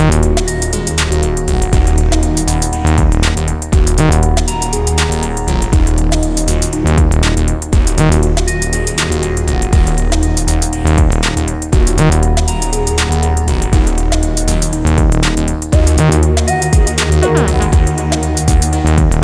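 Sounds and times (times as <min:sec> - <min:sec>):
synth bass on MASCHINE MK3: 0:00.0 - 0:19.2.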